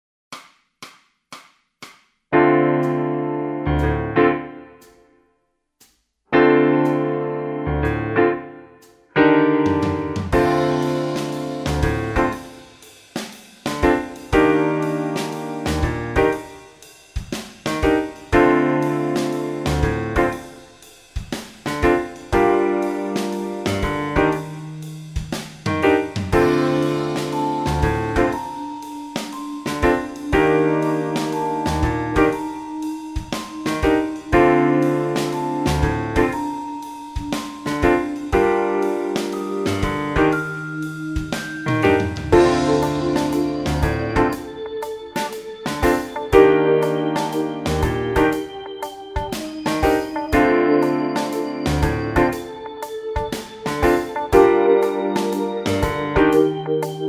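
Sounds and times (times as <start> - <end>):
bass modes backing track: 2.6 - 4.3, 6.4 - 8.3, 9.6 - 12.7, 13.7 - 16.6, 17.7 - 20.5, 21.7 - 52.6, 53.3 - 57.0.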